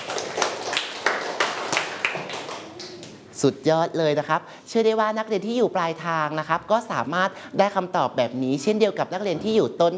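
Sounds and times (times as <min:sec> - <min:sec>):
students clapping in a classroom: 0:00.0 - 0:03.2
speech: 0:03.4 - 0:09.9.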